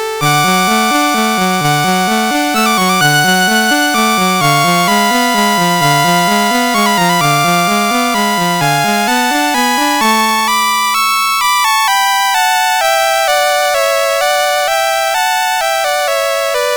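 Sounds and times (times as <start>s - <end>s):
serenade played on a CSG8580 sound chip: 0.2s - 16.6s.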